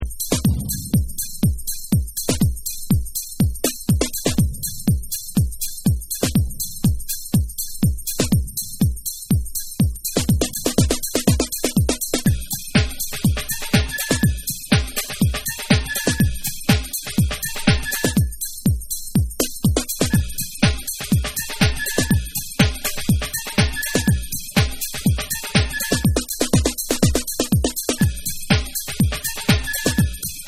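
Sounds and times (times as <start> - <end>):
ragga house bass beats: 0.0 - 30.4.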